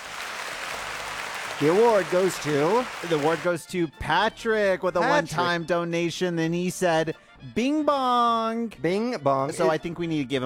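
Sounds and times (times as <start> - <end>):
steady dense applause for an applause break: 0.0 - 3.6
speech: 1.6 - 10.4.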